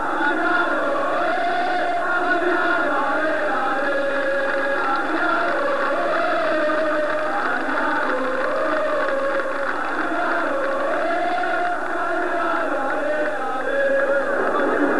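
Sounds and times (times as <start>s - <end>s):
choir singing: 0.0s - 14.9s.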